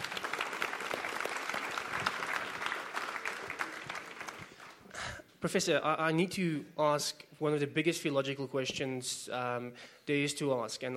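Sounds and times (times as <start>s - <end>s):
audience applause: 0.0s - 4.9s
speech: 5.4s - 10.9s.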